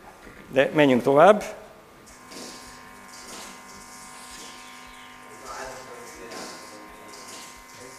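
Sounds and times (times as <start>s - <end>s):
speech: 0.5s - 1.6s
steady electric buzz in radio recording from space: 1.8s - 7.9s.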